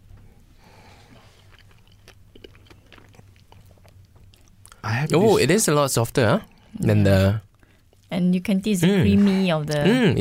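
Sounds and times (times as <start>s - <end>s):
low hum: 0.0s - 10.1s
chewing a black fig from Italy: 0.1s - 5.2s, 6.4s - 8.1s
speech: 4.8s - 7.5s, 8.1s - 10.1s.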